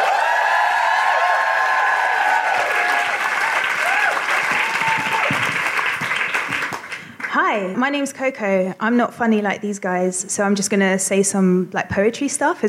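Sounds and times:
audience applause welcoming a spoken-word performer: 0.0s - 7.3s
speech: 7.5s - 12.6s.

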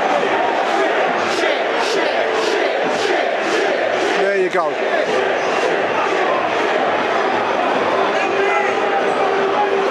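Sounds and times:
football crowd booing players: 0.0s - 9.9s
speech: 4.6s - 5.3s.

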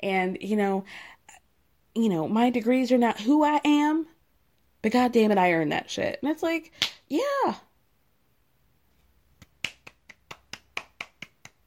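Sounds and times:
speech: 0.0s - 1.2s, 2.0s - 4.1s, 4.8s - 7.7s
hand claps: 9.4s - 11.6s.

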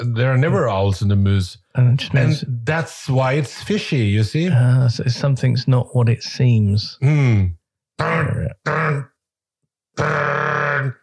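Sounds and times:
speech: 0.1s - 9.1s, 10.0s - 11.0s
vocal tic grunts: 7.0s - 9.2s, 10.0s - 11.0s.

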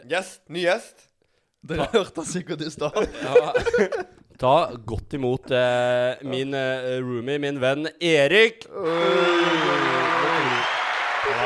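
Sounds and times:
speech: 0.1s - 10.7s
laughter: 2.8s - 4.2s
voices whooping and cheering: 8.8s - 11.4s
applause: 9.3s - 11.4s.

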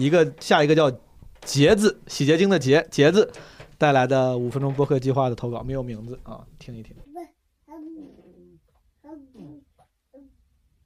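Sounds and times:
speech: 0.0s - 7.1s
five-month-old baby babbling: 7.0s - 10.8s.

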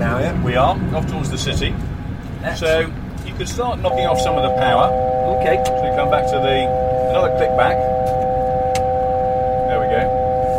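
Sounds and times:
speech: 0.2s - 8.0s
cockpit altitude deviation warning alert: 3.8s - 10.5s.

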